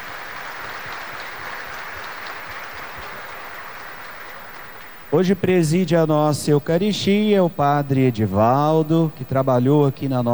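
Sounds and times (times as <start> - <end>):
audience applause: 0.0 - 5.8
speech: 5.1 - 10.3.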